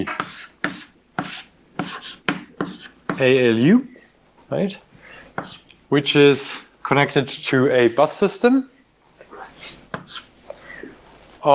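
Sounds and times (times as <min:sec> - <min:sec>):
handwriting strokes sketching a diagram: 0:00.0 - 0:03.3, 0:05.3 - 0:05.7, 0:09.4 - 0:10.4
speech: 0:03.2 - 0:03.9, 0:04.5 - 0:08.7.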